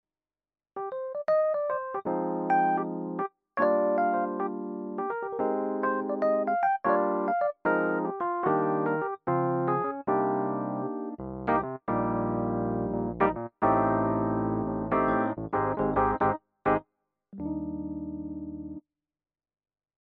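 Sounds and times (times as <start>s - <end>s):
Rhodes electric piano: 0.8s - 16.8s, 17.4s - 18.8s.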